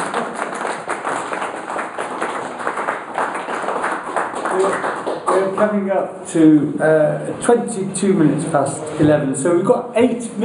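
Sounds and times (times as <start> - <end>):
audience applause: 0.0 - 5.6
speech: 4.6 - 10.4.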